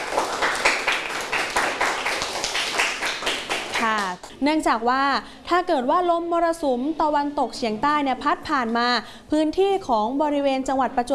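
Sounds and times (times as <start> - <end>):
classroom clapping for a student: 0.0 - 4.3
speech: 4.4 - 11.1.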